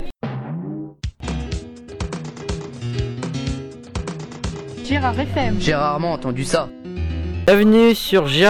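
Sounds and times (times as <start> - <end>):
music: 0.0 - 8.4.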